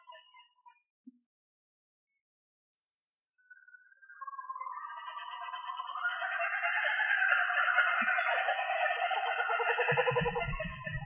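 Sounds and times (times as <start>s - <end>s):
Australorp chicken crowing: 4.8s - 10.9s.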